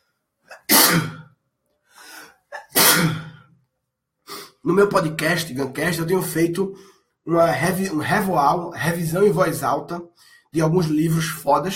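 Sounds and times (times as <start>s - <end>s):
person sneezing: 0.5s - 1.4s, 2.0s - 3.5s
speech: 4.6s - 11.7s.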